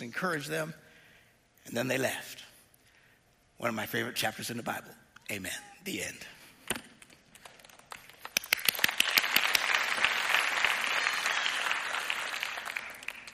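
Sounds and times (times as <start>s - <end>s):
speech: 0.1s - 0.8s, 1.6s - 2.4s, 3.6s - 6.8s
audience clapping: 7.0s - 13.3s.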